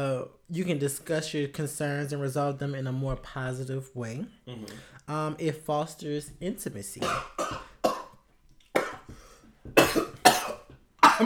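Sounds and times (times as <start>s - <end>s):
speech: 0.0s - 7.6s
person coughing after a drink went down the wrong way: 7.0s - 8.2s, 8.8s - 11.2s.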